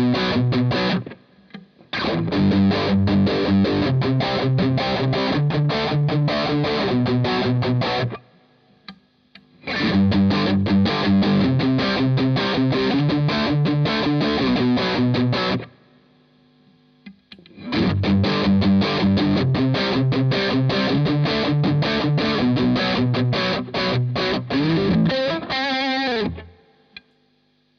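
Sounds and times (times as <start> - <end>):
rock guitar riff: 0.0 - 8.4, 9.6 - 15.8, 17.5 - 27.0.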